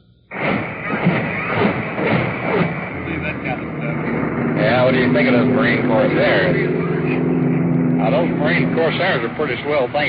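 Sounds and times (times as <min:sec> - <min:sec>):
naval gun barrage from the Missouri: 0:00.3 - 0:07.5
speech: 0:04.9 - 0:07.2, 0:08.0 - 0:10.0.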